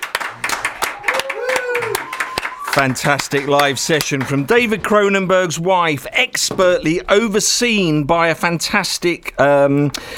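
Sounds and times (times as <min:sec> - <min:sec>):
studio crew round of applause: 0:00.0 - 0:04.4
speech: 0:02.8 - 0:10.1.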